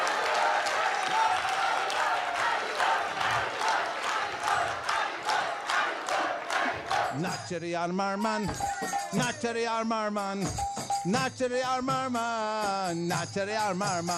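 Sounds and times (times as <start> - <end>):
devotional gathering applauding young kirtan leaders: 0.0 - 7.4
devotional gathering shouting: 0.0 - 7.4
speech: 7.2 - 14.1.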